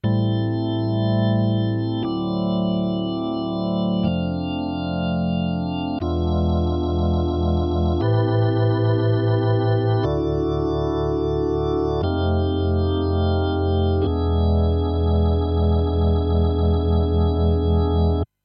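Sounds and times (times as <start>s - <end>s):
electric organ through a rotary speaker: 0.0s - 18.3s.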